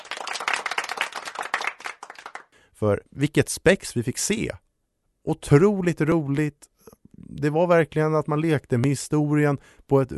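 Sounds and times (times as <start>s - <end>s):
applause: 0.0s - 2.6s
speech: 2.8s - 4.6s, 5.2s - 6.7s, 7.3s - 10.1s.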